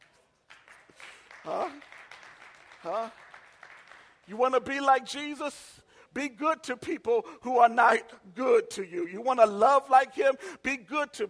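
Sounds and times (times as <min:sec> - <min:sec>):
crowd clapping: 0:00.0 - 0:04.3
speech: 0:01.4 - 0:02.0, 0:02.8 - 0:03.2, 0:04.3 - 0:11.2.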